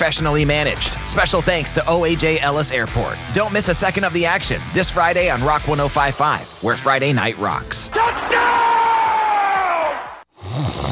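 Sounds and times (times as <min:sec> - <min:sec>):
speech: 0:00.0 - 0:08.5
football crowd cheering a touchdown: 0:07.9 - 0:10.2
sustained shout: 0:07.9 - 0:10.2.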